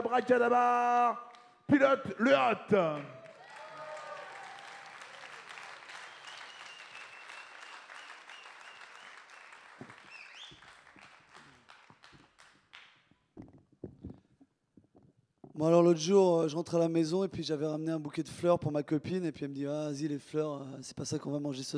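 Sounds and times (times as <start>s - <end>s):
speech: 0.1s - 3.2s, 15.6s - 21.7s
audience applause: 3.0s - 12.9s.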